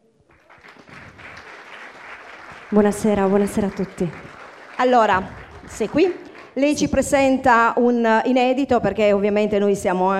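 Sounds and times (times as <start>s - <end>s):
audience applause welcoming a veteran singer at a music show: 0.2s - 6.8s
speech: 2.7s - 10.1s.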